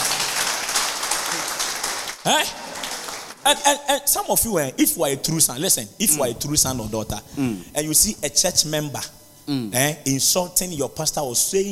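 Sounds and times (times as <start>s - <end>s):
crowd clapping: 0.0s - 3.6s
speech: 2.3s - 2.7s, 3.4s - 11.6s.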